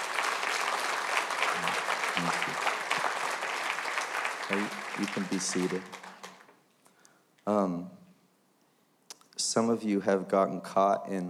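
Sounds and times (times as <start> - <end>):
audience applause: 0.0 - 6.5
speech: 4.5 - 6.0, 7.5 - 8.0, 9.6 - 11.2.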